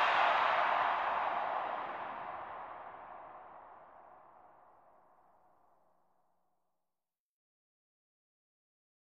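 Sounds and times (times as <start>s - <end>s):
sports arena crowd whooing: 0.0s - 3.6s.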